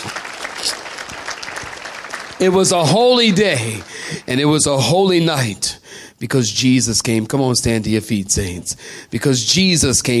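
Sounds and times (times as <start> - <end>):
audience clapping hands: 0.0 - 4.8
speech: 2.4 - 10.1.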